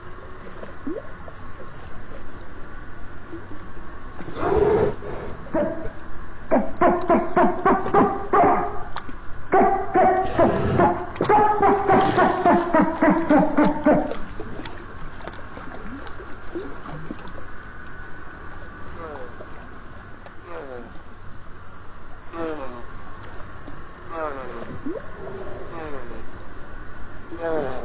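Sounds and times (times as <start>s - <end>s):
background hiss: 0.0s - 27.8s
dolphin chattering: 10.0s - 14.2s.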